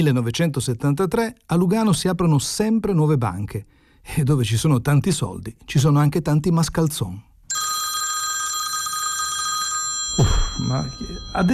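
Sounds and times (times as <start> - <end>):
speech: 0.0 - 7.3, 10.2 - 11.5
telephone ringing with electronic warbling trill: 7.5 - 11.5.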